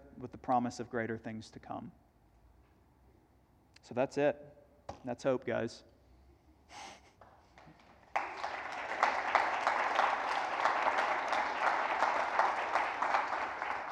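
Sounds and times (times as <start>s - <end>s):
speech: 0.2s - 2.0s, 3.8s - 5.9s
applause after a sermon: 7.5s - 13.9s.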